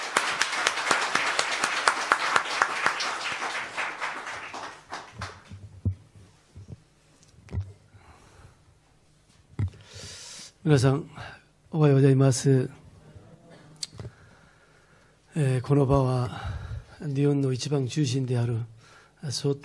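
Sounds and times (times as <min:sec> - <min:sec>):
audience applause: 0:00.0 - 0:05.5
speech: 0:10.7 - 0:12.8, 0:15.4 - 0:19.6.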